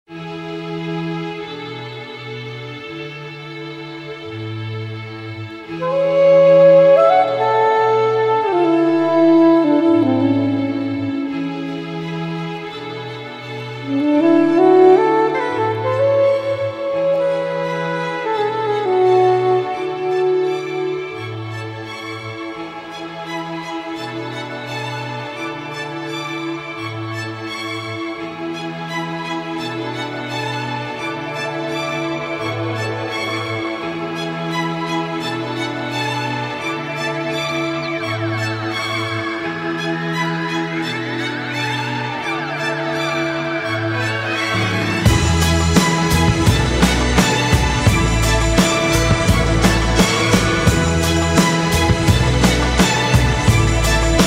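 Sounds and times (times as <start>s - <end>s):
saxophone: 0.1s - 54.2s.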